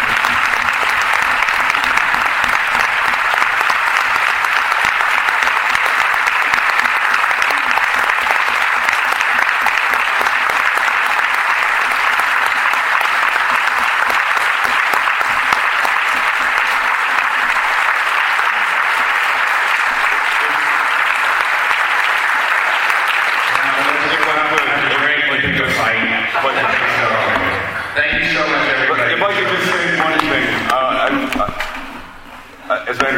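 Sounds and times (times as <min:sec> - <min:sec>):
audience applause: 0:00.0 - 0:32.2
laughter: 0:23.6 - 0:32.1.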